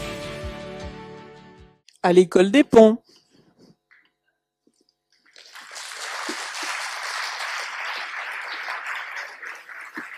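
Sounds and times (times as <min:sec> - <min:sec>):
speech: 0:02.0 - 0:03.0
audience applause: 0:05.4 - 0:10.1.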